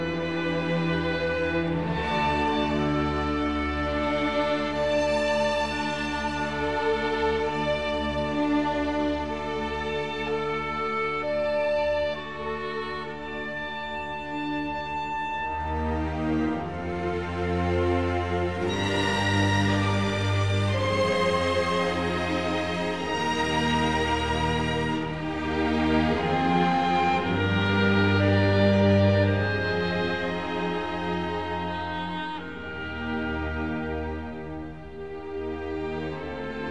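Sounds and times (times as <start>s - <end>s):
clarinet: 0.0s - 36.6s
string orchestra: 0.0s - 36.6s.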